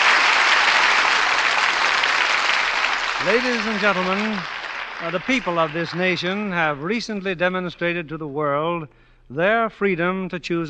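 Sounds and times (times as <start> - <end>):
audience applause: 0.0 - 6.9
speech: 3.2 - 10.6.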